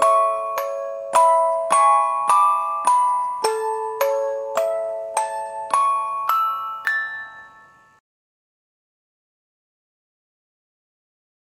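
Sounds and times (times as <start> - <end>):
baby sleep music box lullaby: 0.0 - 8.0.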